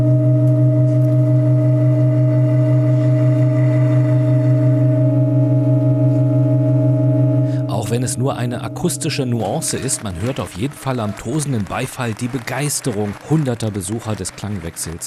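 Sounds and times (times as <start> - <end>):
organ pipes sustaining chord: 0.0 - 14.0
speech: 8.0 - 15.0.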